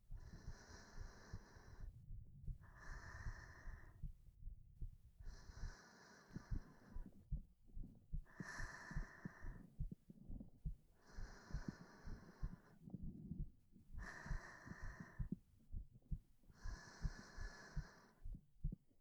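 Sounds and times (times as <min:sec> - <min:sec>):
heartbeat: 0:00.0 - 0:18.9
sleeping breath: 0:00.2 - 0:04.0, 0:05.2 - 0:07.2, 0:08.3 - 0:09.7, 0:11.0 - 0:13.4, 0:14.0 - 0:15.4, 0:16.6 - 0:18.2.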